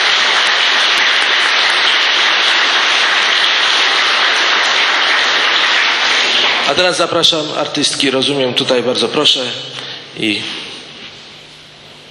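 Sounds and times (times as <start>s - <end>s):
crowd applause: 0.0s - 7.1s
speech: 6.7s - 10.6s.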